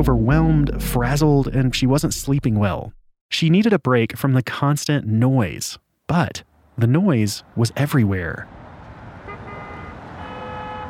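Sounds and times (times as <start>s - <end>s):
speech: 0.0s - 8.6s
Manhattan street traffic: 6.4s - 10.8s
car horns: 9.2s - 10.8s.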